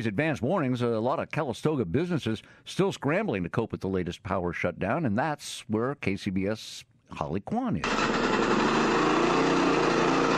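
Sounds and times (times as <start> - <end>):
speech: 0.0 - 8.8
generator droning outside Soul Rebel Coffee and Juice Bar: 7.8 - 10.3.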